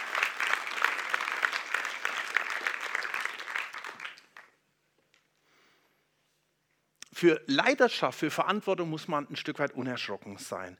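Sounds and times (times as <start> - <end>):
audience applause: 0.0 - 4.6
speech: 7.2 - 10.7.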